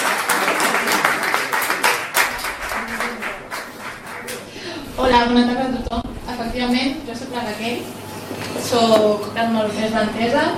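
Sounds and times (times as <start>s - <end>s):
crowd applause: 0.0s - 4.6s
speech: 5.0s - 10.5s.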